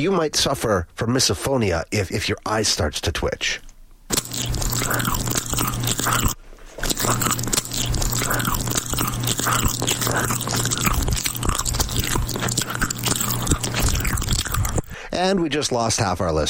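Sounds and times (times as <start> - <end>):
speech: 0.0 - 3.7, 4.4 - 5.4, 6.0 - 6.4, 7.1 - 7.5, 15.2 - 16.4
loud chewing of food: 4.1 - 15.1.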